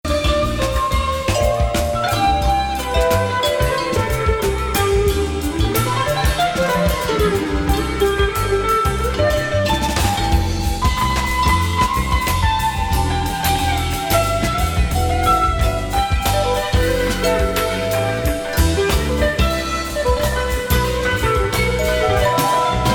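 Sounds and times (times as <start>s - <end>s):
jazz music: 0.0s - 22.9s.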